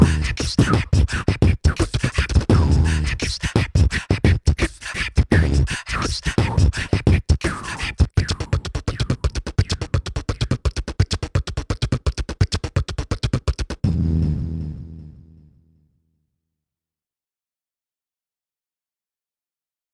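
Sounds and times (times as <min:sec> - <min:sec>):
beatboxing: 0:00.0 - 0:13.9.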